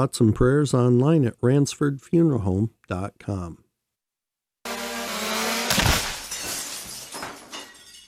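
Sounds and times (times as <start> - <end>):
speech: 0.0 - 3.6
drone crashing into window glass: 4.9 - 7.2.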